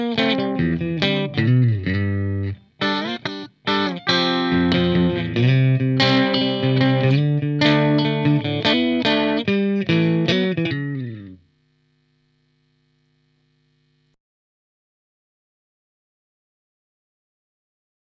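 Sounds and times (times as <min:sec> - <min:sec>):
clean Stratocaster electric guitar: 0:00.0 - 0:14.1.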